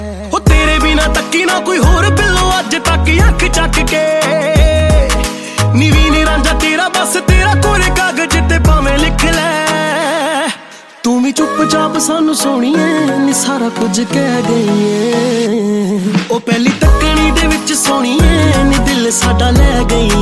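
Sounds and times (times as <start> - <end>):
Punjabi ringtone music: 0.3 - 20.2.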